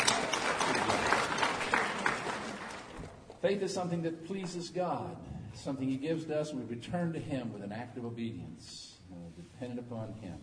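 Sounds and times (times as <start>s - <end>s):
audience applause: 0.0s - 3.2s
speech: 3.4s - 10.4s.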